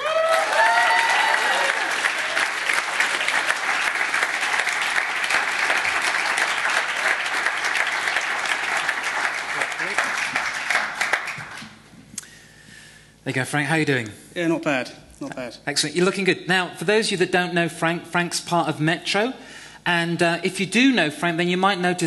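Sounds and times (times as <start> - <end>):
people whooping: 0.0 - 3.5
large audience applause: 0.0 - 11.8
speech: 13.3 - 22.0.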